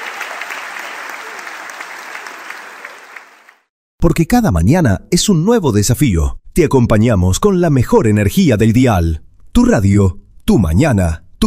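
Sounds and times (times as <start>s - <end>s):
audience applause: 0.0s - 3.7s
speech: 4.0s - 11.4s.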